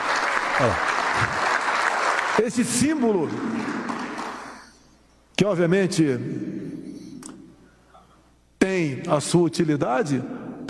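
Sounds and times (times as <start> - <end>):
crowd applauding: 0.0 - 4.8
speech: 0.6 - 1.5, 2.4 - 3.9, 5.4 - 6.5, 8.8 - 10.6.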